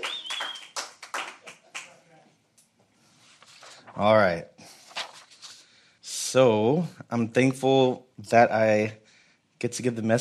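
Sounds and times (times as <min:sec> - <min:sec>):
audience clapping: 0:00.0 - 0:02.0
speech: 0:04.0 - 0:04.5, 0:06.3 - 0:09.0, 0:09.6 - 0:10.1.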